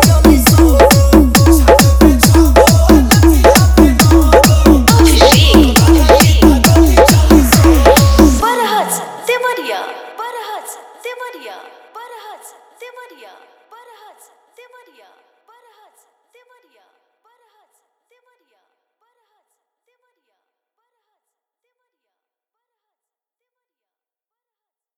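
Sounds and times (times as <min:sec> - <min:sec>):
hard vibration mix: 0:00.0 - 0:08.4.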